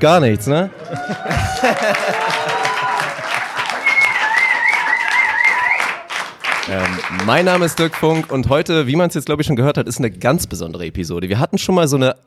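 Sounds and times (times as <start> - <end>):
speech: 0.0 - 2.6, 6.7 - 12.2
audience applause and cheering: 0.1 - 8.7
laughter: 0.3 - 5.7.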